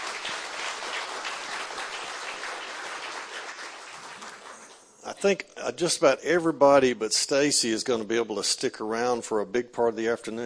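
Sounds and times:
audience applause: 0.0 - 4.8
speech: 5.0 - 10.4.

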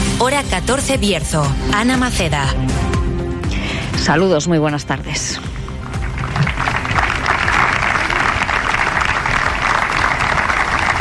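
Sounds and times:
speech: 0.2 - 2.9, 4.0 - 5.6
sustained applause at a public gathering: 5.7 - 11.0.

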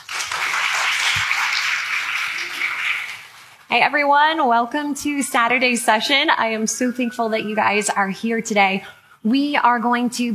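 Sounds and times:
audience applause welcoming a speaker at the 2024 Evidence and Answers Apologetics Conference: 0.0 - 3.6
speech: 3.7 - 10.3.

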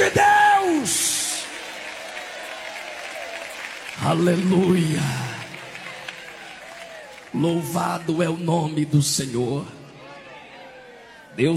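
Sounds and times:
audience applauding: 0.0 - 9.0
speech: 4.1 - 5.2, 7.3 - 9.8, 11.4 - 11.5.

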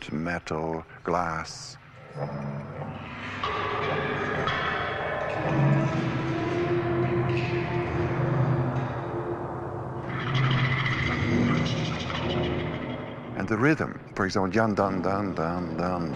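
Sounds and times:
speech: 0.1 - 4.6, 5.4 - 6.2, 13.4 - 16.1
large Chinese gong rubbed with microphone: 1.9 - 13.4.

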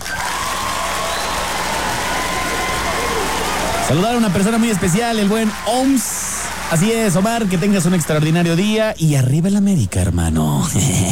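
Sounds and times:
applause: 0.0 - 8.8
speech: 3.9 - 11.1.

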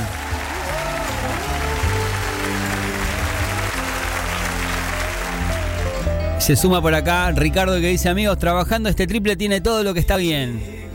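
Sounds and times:
crowd applause: 0.0 - 6.4
low sustained musical tones: 0.0 - 10.9
speech: 6.4 - 10.9.

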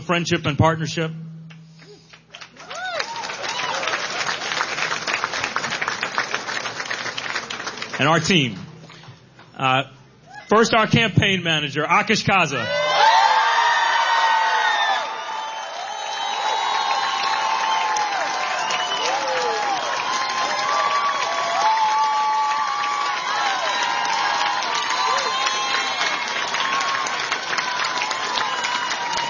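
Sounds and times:
speech: 0.1 - 1.2, 8.0 - 8.7, 9.6 - 12.8
large crowd cheering and applauding: 1.8 - 8.0, 12.7 - 29.2
whoops and shouts: 2.6 - 4.0, 12.6 - 29.2.

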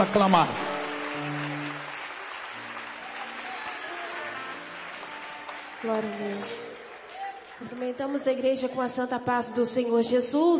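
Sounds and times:
speech: 0.0 - 0.6, 5.8 - 6.7, 7.6 - 10.5
church audience applause: 0.0 - 8.0.

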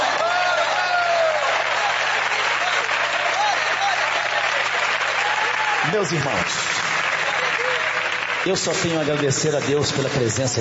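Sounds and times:
faint raised voices and cheers: 0.0 - 6.4
church audience applauding in a reverberant hall: 0.0 - 10.5
speech: 5.9 - 6.6, 8.4 - 10.5.

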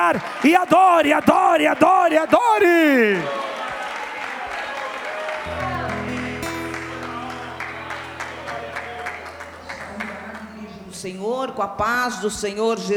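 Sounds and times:
speech: 0.0 - 3.5, 11.0 - 12.9
audience clapping hands: 3.1 - 10.8.

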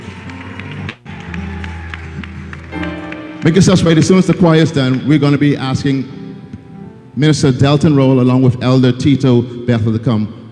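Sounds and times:
audience clapping for the choir: 0.0 - 5.6
speech: 3.4 - 6.2, 7.2 - 10.4.

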